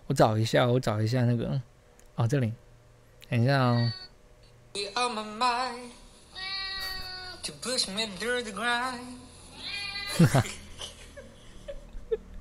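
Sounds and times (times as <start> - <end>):
speech: 0.1 - 2.6, 3.3 - 4.1, 4.7 - 6.0, 7.4 - 10.6
cat meowing: 9.6 - 10.2.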